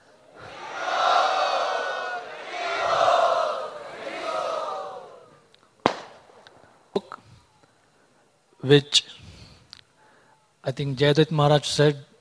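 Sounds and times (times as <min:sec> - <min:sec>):
crowd at a spiritual gathering cheering and shouting: 0:00.3 - 0:05.5
speech: 0:08.7 - 0:09.1, 0:10.7 - 0:12.1.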